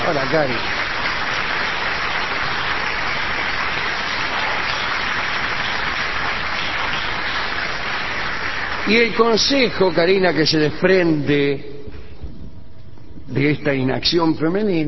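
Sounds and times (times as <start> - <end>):
audience applause: 0.0 - 10.8
speech: 0.1 - 0.8, 8.9 - 11.8, 13.3 - 14.8.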